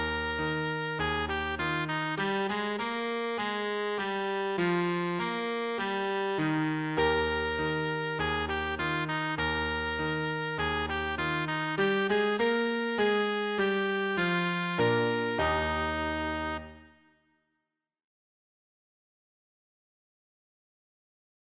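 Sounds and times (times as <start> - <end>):
tenor musette accordion: 0.0 - 17.0.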